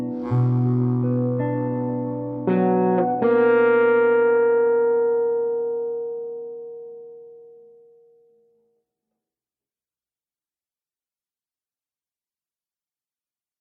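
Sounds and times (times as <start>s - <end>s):
bass harmonica: 0.0s - 3.4s
guitar: 0.0s - 8.7s.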